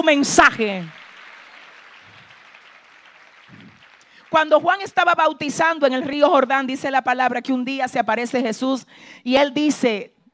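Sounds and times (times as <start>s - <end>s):
speech: 0.0s - 1.0s, 4.3s - 10.2s
audience clapping: 0.0s - 5.2s.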